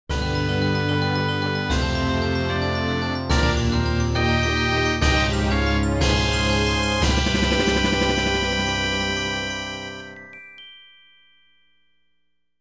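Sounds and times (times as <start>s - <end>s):
medal get fanfare: 0.6s - 10.5s.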